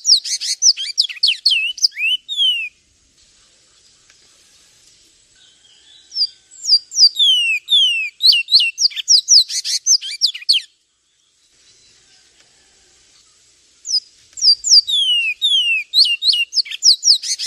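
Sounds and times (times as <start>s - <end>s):
Javan tesia piercing high chirps and falling whistles: 0.0s - 2.8s, 6.1s - 10.7s, 13.9s - 17.4s.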